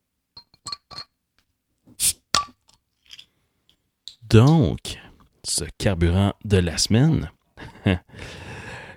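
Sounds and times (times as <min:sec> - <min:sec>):
glass beer bottle clinks: 0:00.4 - 0:01.1
bottle of summer seasonal beer uncorked: 0:02.0 - 0:02.3
speech: 0:04.3 - 0:08.4.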